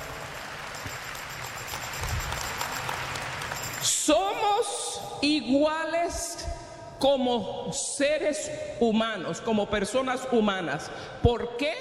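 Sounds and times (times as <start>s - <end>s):
audience applause: 0.0s - 4.0s
speech: 4.6s - 6.4s, 7.0s - 11.7s.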